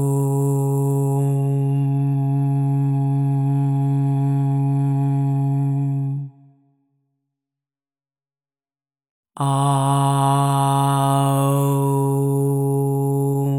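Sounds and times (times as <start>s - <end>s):
OM 136.1 Hz tone with reverb: 0.0s - 6.4s, 9.4s - 13.5s.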